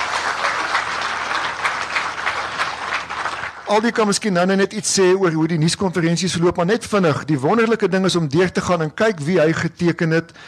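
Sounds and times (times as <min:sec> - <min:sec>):
audience applause: 0:00.0 - 0:04.2
speech: 0:03.7 - 0:10.4.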